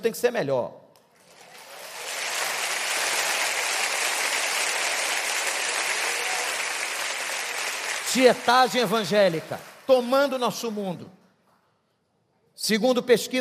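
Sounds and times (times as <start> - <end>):
speech: 0.0 - 0.8, 8.1 - 11.2, 12.6 - 13.3
audience applause: 1.2 - 10.7.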